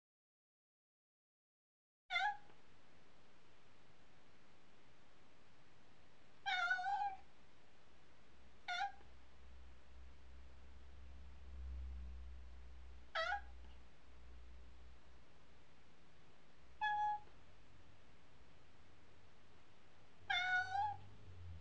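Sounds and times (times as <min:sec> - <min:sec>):
cat meowing: 0:02.1 - 0:02.5, 0:06.4 - 0:07.2, 0:08.7 - 0:09.1, 0:13.1 - 0:13.6, 0:16.8 - 0:17.4, 0:20.2 - 0:21.0.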